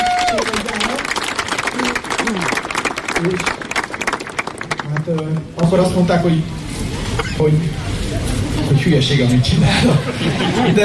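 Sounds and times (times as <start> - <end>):
audience applause: 0.0 - 5.4
speech: 3.2 - 3.6, 5.1 - 6.8, 7.4 - 7.9, 8.7 - 10.8
laughter: 9.5 - 10.8.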